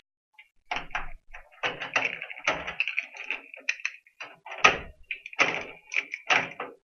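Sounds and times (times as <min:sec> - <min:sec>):
door opening: 0:00.7 - 0:06.8.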